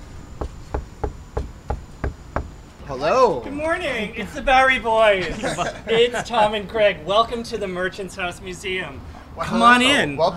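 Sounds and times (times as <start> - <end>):
firm knocks on a wooden door: 0.4 - 2.6
speech: 2.9 - 10.3
laughter: 5.1 - 6.7.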